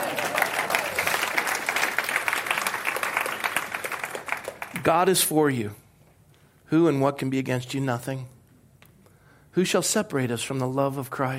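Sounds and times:
audience clapping: 0.0s - 5.2s
speech: 4.8s - 5.8s, 6.7s - 8.4s, 9.6s - 11.3s.

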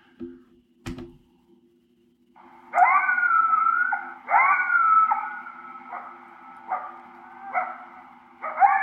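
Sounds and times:
steady low hum: 0.0s - 8.8s
coyote location call howls and yips: 2.7s - 8.8s.

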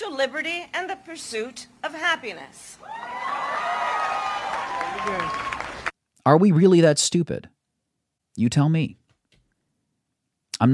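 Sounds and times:
speech: 0.1s - 3.5s, 5.0s - 5.6s, 6.3s - 7.6s, 8.4s - 9.0s, 10.6s - 10.7s
crowd applauding on a recording: 2.9s - 5.9s.

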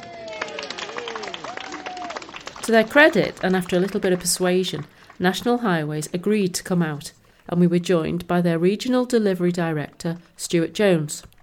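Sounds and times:
crowd applause: 0.0s - 5.4s
speech: 2.7s - 11.3s.

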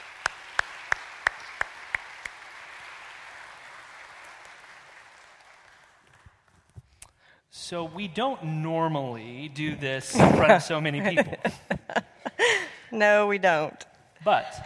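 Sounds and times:
audience applauding as a guest is welcomed to the stage: 0.0s - 6.5s
speech: 7.5s - 11.8s, 13.0s - 14.6s
laughter: 10.0s - 12.9s.

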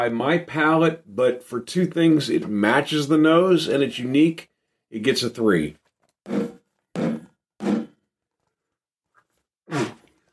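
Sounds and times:
speech: 0.0s - 6.4s
person sneezing: 9.6s - 10.1s.

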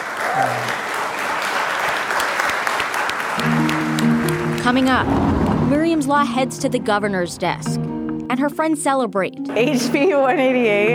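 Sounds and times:
large group applauding in senate chamber: 0.0s - 5.6s
speech: 4.7s - 10.9s.

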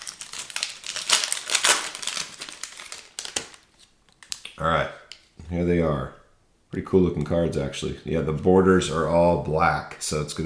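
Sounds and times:
trading card wax pack wrapper crinkling: 0.0s - 4.6s
speech: 4.6s - 10.4s.

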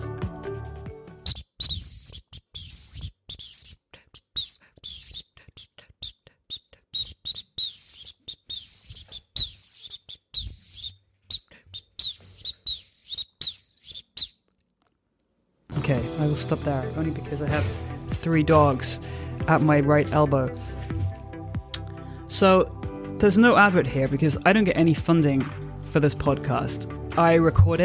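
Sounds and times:
tune played on Acme 212 whistle: 1.2s - 3.8s, 4.4s - 5.3s, 6.0s - 14.4s
speech: 16.4s - 20.7s, 22.4s - 27.8s.

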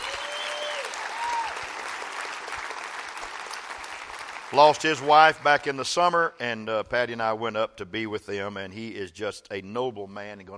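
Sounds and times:
church congregation applauding to welcome a visiting elder: 0.0s - 5.6s
speech: 4.5s - 10.5s.

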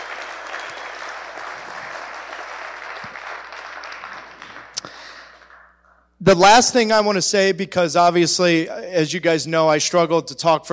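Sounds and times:
audience applause: 0.0s - 5.8s
speech: 6.2s - 10.7s.

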